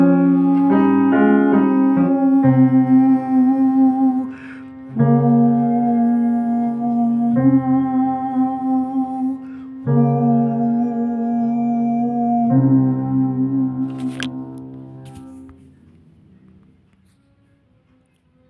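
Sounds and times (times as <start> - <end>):
contralto voices singing: 0.0 - 14.7.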